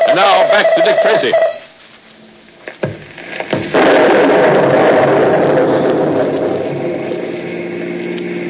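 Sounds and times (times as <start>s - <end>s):
speech: 0.2s - 1.5s
thunder from a winter lightning storm: 2.9s - 8.4s.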